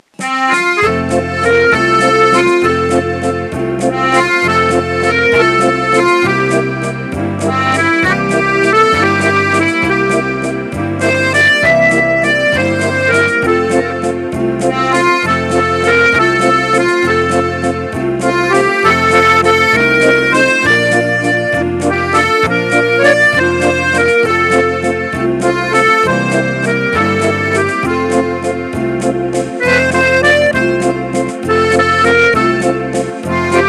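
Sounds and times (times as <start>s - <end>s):
waltz music: 0.0s - 33.6s.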